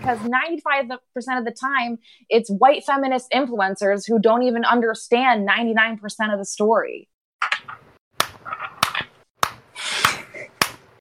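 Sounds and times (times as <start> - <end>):
speech: 0.0 - 7.1
slow clap: 8.2 - 10.9.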